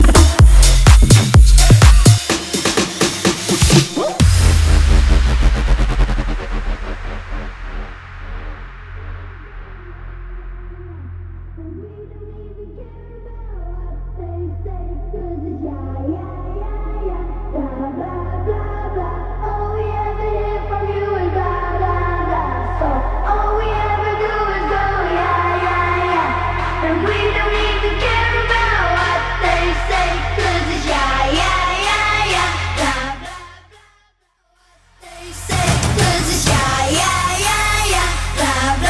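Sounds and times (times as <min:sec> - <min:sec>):
big room dance music at 131 bpm: 0:00.0 - 0:11.6, 0:14.8 - 0:33.8, 0:34.8 - 0:38.8.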